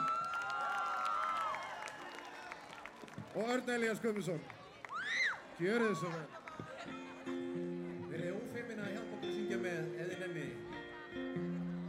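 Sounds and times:
crowd clapping: 0:00.0 - 0:07.1
speech: 0:03.4 - 0:04.6, 0:05.6 - 0:07.0, 0:08.6 - 0:11.5
laughter: 0:05.8 - 0:08.3.

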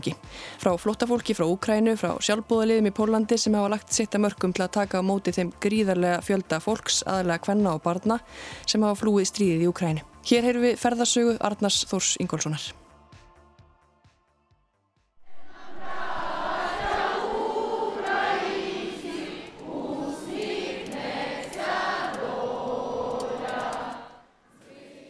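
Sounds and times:
speech: 0:00.0 - 0:12.8
crowd singing at a protest rally: 0:15.3 - 0:25.0.

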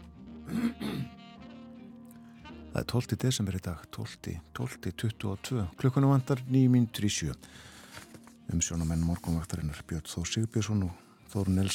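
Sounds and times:
person clearing throat: 0:00.4 - 0:01.2
speech: 0:02.8 - 0:07.7, 0:08.5 - 0:11.7.

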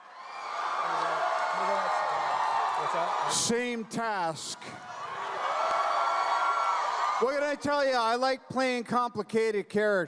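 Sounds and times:
audience cheering for a celebrity: 0:00.0 - 0:07.4
speech: 0:02.9 - 0:05.0, 0:07.2 - 0:10.0.

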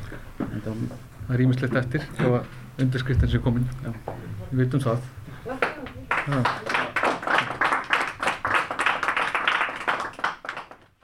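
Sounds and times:
speech: 0:00.7 - 0:05.6, 0:06.3 - 0:06.7
group applause after signing an agreement: 0:05.5 - 0:11.0.

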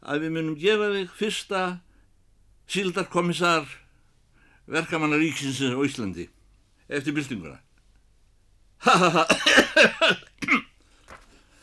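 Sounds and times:
speech: 0:00.1 - 0:01.9, 0:02.7 - 0:03.8, 0:04.7 - 0:07.7, 0:08.8 - 0:10.6
harsh raspy coughing: 0:08.9 - 0:10.8.

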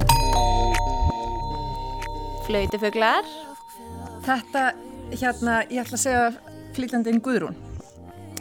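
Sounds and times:
song played backwards: 0:00.1 - 0:05.2
speech: 0:02.5 - 0:03.5, 0:04.3 - 0:07.7.

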